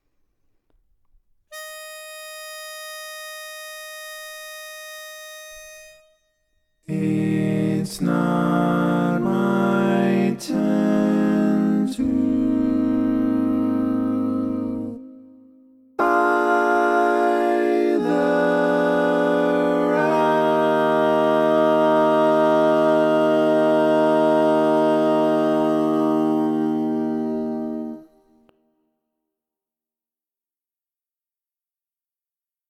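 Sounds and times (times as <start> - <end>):
baritone singing barbershop tags: 6.9 - 15.0, 16.0 - 28.0.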